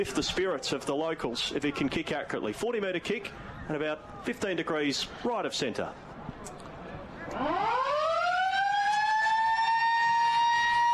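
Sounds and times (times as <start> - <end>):
speech: 0.0 - 6.6
stadium siren ending the first quarter of a football match: 7.4 - 10.9.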